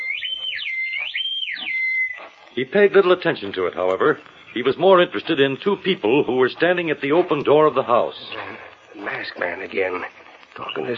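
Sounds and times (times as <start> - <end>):
whistle in the night: 0.0 - 2.3
speech: 2.6 - 10.9.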